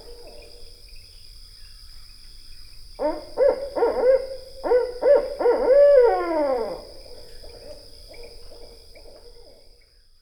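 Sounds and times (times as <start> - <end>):
barred owl hooting: 3.0 - 6.9.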